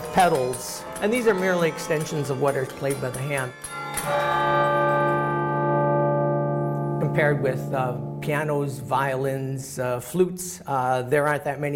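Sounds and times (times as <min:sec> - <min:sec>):
bells struck by clapper: 0:00.0 - 0:09.4
speech: 0:00.2 - 0:04.7, 0:07.2 - 0:11.7.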